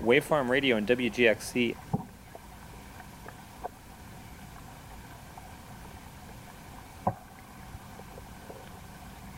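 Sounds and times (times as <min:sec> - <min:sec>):
speech: 0:00.0 - 0:01.9
underwater pond at Zakpost Pond Station recorded through hydrophones: 0:00.0 - 0:09.3.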